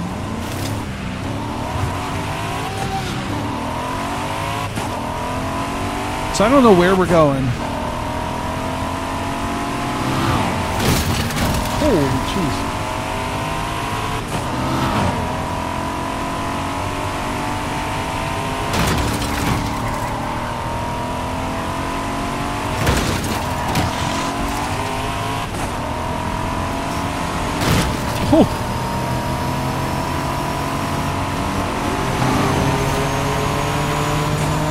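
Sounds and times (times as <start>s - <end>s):
car engine droning while driving: 0.0s - 34.6s
speech: 6.4s - 7.6s, 11.9s - 12.7s.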